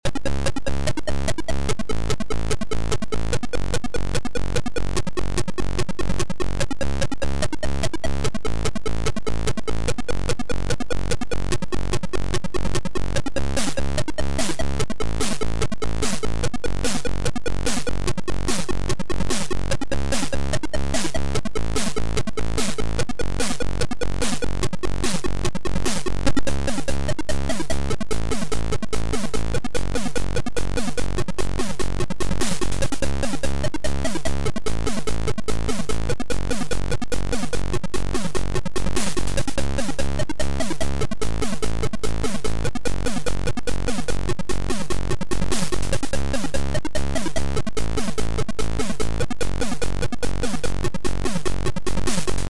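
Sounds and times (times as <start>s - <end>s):
techno music: 0.1s - 52.4s.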